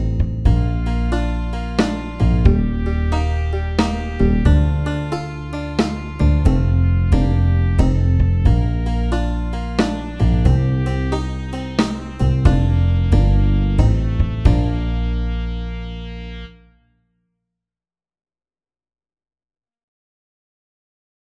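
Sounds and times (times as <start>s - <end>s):
slow country shuffle music at 90 bpm: 0.0s - 16.4s.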